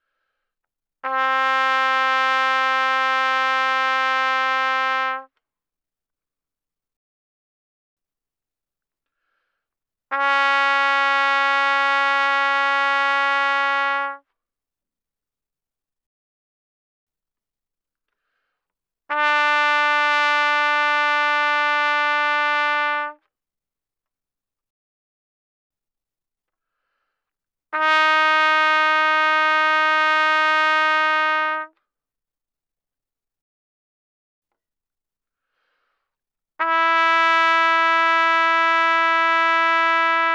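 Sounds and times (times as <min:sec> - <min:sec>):
very loud trumpet notes without vibrato: 0:01.0 - 0:05.3, 0:10.1 - 0:14.2, 0:19.1 - 0:23.2, 0:27.8 - 0:31.7, 0:36.6 - 0:40.3.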